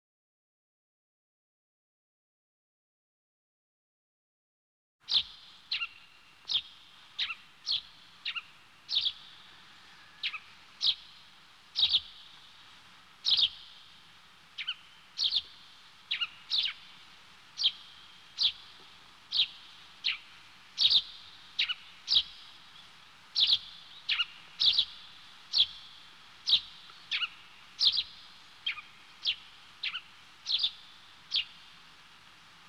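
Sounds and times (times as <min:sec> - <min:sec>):
faint steady hiss: 0:05.0 - 0:32.6
small bird chirping: 0:05.1 - 0:13.9, 0:14.6 - 0:17.0, 0:17.6 - 0:31.7.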